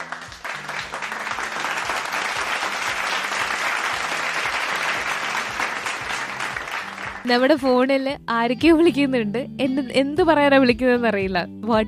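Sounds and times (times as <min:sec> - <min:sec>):
audience applause for everyone who answered a quiz question: 0:00.0 - 0:07.3
speech: 0:07.3 - 0:11.8.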